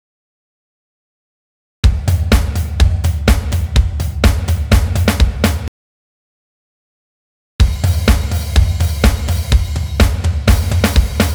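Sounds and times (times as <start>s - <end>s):
indie rock drum loop at 125 BPM: 1.9s - 5.7s, 7.6s - 11.3s.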